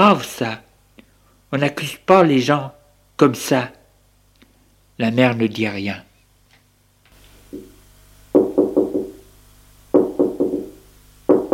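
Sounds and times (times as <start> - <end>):
speech: 0.0 - 0.6, 1.5 - 3.8, 5.0 - 6.1
knocking on a door: 8.3 - 9.2, 9.9 - 11.5.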